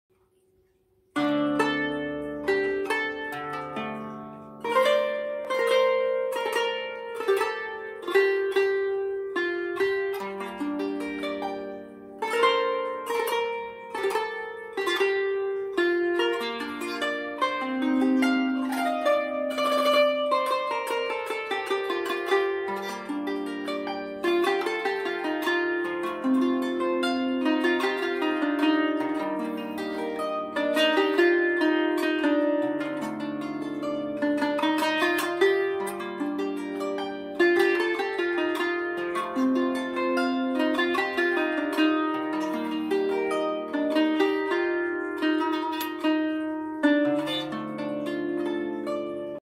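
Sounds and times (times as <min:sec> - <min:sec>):
qanoon playing: 0:00.1 - 0:49.4.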